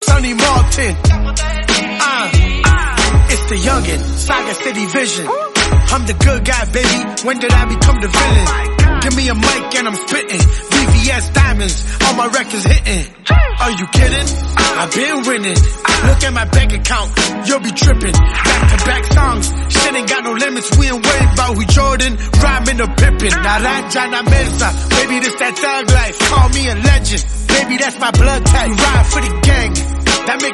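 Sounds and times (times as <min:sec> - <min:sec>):
rap music: 0:00.0 - 0:30.5.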